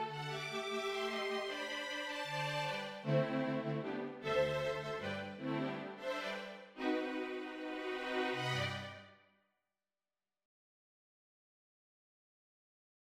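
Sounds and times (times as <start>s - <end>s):
string quartet playing a Christmas carol: 0.0s - 9.0s.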